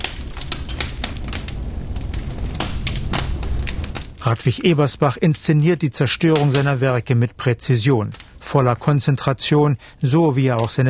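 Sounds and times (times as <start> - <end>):
fire crackling in open fireplace: 0.0 - 10.8
speech: 4.2 - 10.8.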